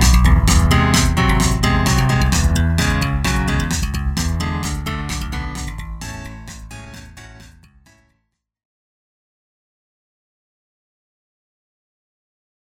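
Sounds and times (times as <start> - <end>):
piano playing in E major: 0.0 - 8.0.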